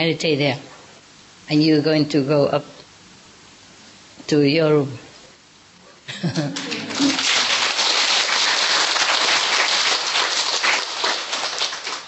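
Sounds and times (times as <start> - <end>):
speech: 0.0 - 0.7, 1.5 - 2.8, 4.3 - 5.1, 6.1 - 7.1
laughter: 6.1 - 7.6
hand clapping: 6.3 - 12.0.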